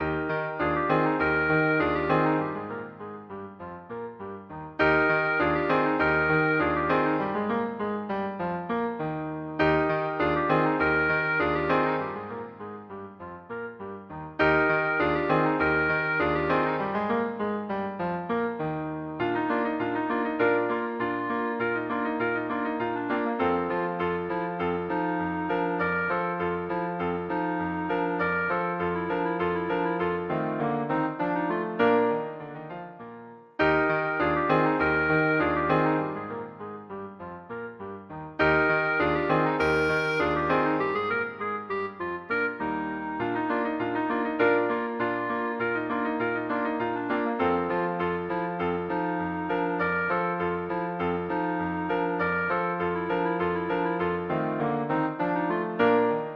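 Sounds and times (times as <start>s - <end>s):
clarinet: 0.0s - 56.3s
musette: 0.0s - 56.3s.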